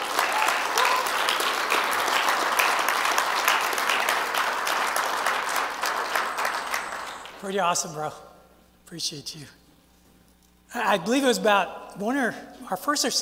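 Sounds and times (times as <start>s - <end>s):
audience applause: 0.0s - 7.4s
speech: 7.4s - 8.3s, 8.9s - 9.6s, 10.7s - 13.2s.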